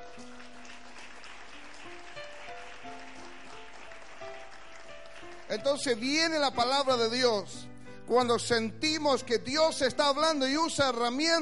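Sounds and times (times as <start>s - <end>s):
audience applauding loudly: 0.0s - 6.6s
speech: 5.5s - 11.4s.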